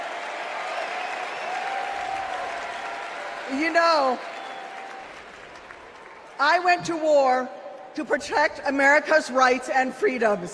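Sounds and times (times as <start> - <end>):
crowd applauding and cheering: 0.0 - 6.7
speech: 3.5 - 4.3, 6.4 - 10.5.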